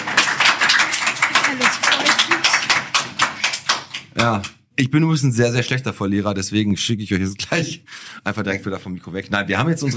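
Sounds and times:
small group clapping after winning a quiz game: 0.0 - 4.6
speech: 4.2 - 9.9.

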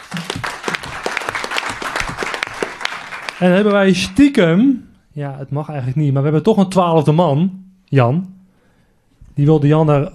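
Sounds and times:
crowd applauding: 0.0 - 4.1
speech: 3.4 - 8.4, 9.4 - 10.1.

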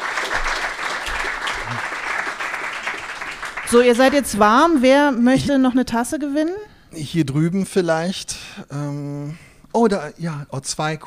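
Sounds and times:
audience applause: 0.0 - 4.2
speech: 3.7 - 11.0.

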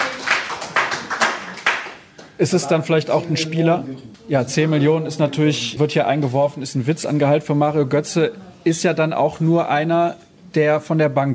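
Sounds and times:
applause: 0.0 - 2.1
speech: 2.4 - 11.3.

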